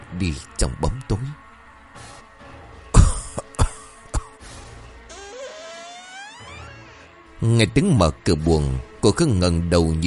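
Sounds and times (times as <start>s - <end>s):
speech: 0.2s - 1.4s, 7.4s - 10.0s
man coughing: 2.9s - 4.4s.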